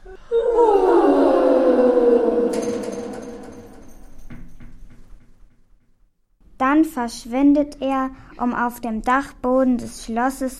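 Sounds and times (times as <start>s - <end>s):
voice performing an eerie ghostly yawn: 0.0s - 4.2s
speech: 6.8s - 10.5s.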